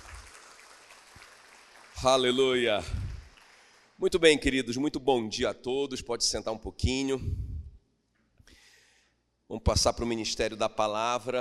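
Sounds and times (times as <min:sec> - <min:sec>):
audience applause: 0:00.0 - 0:04.0
speech: 0:02.0 - 0:03.0, 0:04.0 - 0:07.4, 0:09.5 - 0:11.3.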